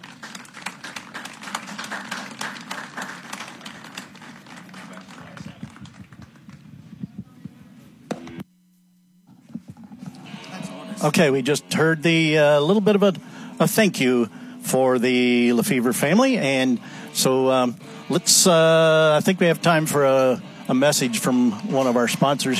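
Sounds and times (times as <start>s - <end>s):
crowd applause for donors: 0.0s - 6.7s
speech: 11.0s - 22.5s.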